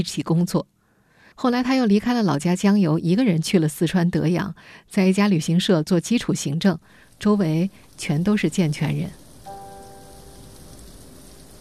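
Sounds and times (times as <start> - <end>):
speech: 0.0 - 9.2
rain falling: 6.3 - 11.5
faint tonal ring: 9.4 - 11.5.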